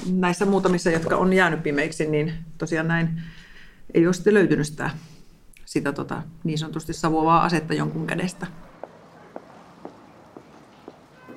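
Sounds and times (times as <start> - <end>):
speech: 0.0 - 5.1, 5.7 - 8.6
footsteps walking from Pasila police station to Tripla shopping centre: 8.6 - 11.3.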